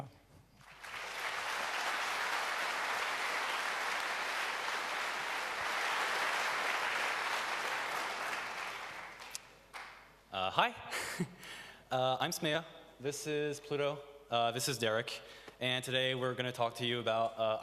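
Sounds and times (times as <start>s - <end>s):
audience applause: 0.6s - 10.0s
speech: 10.5s - 17.6s.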